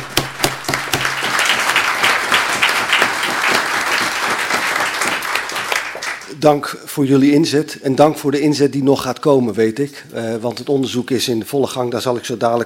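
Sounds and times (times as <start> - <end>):
audience applause: 0.0 - 6.4
speech: 6.4 - 12.6.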